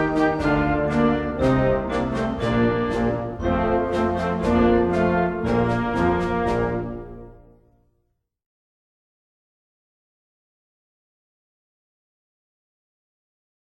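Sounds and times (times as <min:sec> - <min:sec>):
march music: 0:00.0 - 0:07.8.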